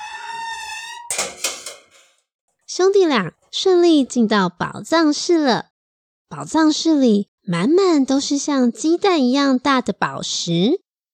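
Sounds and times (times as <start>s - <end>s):
metal door making strange sound: 0.0s - 2.2s
speech: 2.8s - 5.7s, 6.3s - 10.8s.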